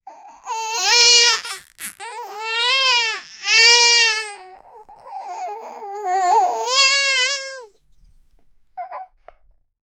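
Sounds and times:
low baby crying and sobbing: 0:00.1 - 0:07.7.

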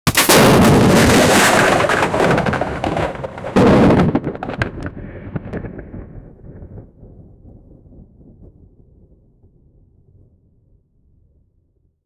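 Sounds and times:
120mm explosives exploding: 0:00.1 - 0:06.3.

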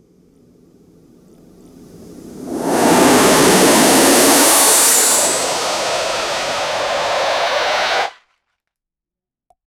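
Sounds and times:
jetpack taking off at full throttle: 0:02.2 - 0:08.2.

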